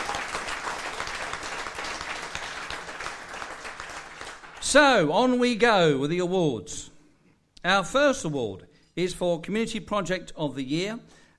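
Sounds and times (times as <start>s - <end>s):
audience applause: 0.0s - 4.6s
speech: 4.7s - 6.9s, 7.6s - 11.3s.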